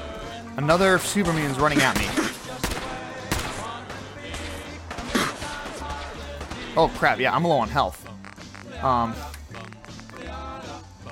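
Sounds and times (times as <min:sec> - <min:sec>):
busy game noise: 0:00.0 - 0:11.0
speech: 0:00.6 - 0:02.2, 0:06.8 - 0:08.0, 0:08.8 - 0:09.3
video game gunshots at a toy factory: 0:01.1 - 0:07.1.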